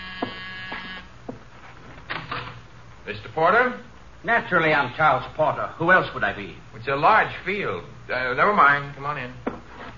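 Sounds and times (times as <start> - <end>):
harsh electric doorbell buzzer: 0.0 - 1.1
speech: 3.1 - 9.5.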